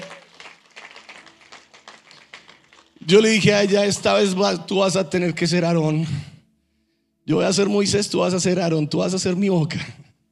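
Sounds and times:
audience applauding: 0:00.0 - 0:03.4
speech: 0:03.1 - 0:06.3, 0:07.3 - 0:10.0.

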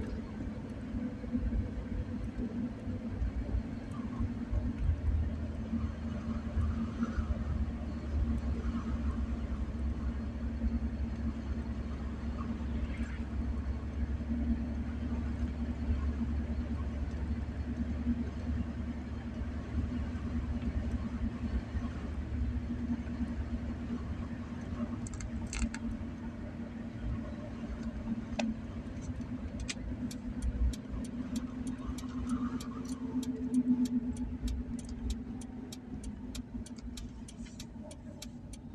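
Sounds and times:
car engine hum while driving: 0:00.0 - 0:38.7
road rumble: 0:00.0 - 0:38.7
faint clicks and taps: 0:27.8 - 0:38.7
ticking: 0:29.0 - 0:38.7.

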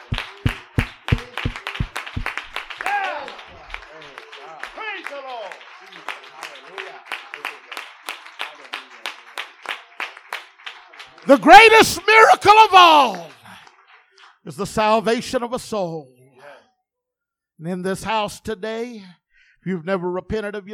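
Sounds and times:
audience clapping hands: 0:00.0 - 0:14.8
speech: 0:11.3 - 0:13.3, 0:14.5 - 0:16.2, 0:17.6 - 0:20.7.

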